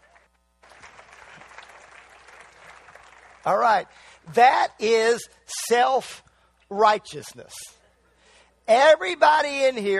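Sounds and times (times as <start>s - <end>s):
audience clapping: 0.0s - 3.9s
speech: 3.4s - 7.8s, 8.7s - 9.9s.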